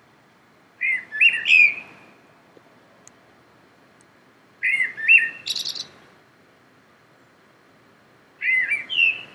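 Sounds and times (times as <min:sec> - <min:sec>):
common blackbird singing: 0:00.8 - 0:01.9, 0:04.6 - 0:05.9, 0:08.4 - 0:09.3.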